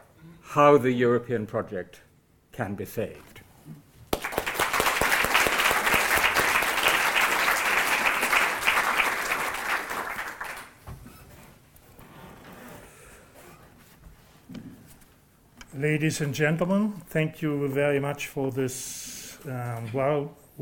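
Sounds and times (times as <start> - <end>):
speech: 0.5 - 2.0, 2.6 - 3.8, 15.8 - 20.5
lecture audience applause welcoming a professor: 4.1 - 10.8.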